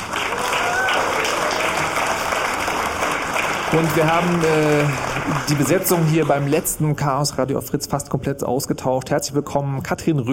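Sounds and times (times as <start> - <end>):
live audience applause: 0.0 - 7.2
speech: 3.7 - 10.3.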